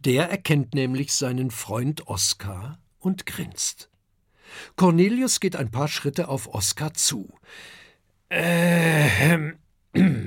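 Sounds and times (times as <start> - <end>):
speech: 0.0 - 3.9, 4.5 - 10.2
teacher clearing his throat: 8.4 - 10.2.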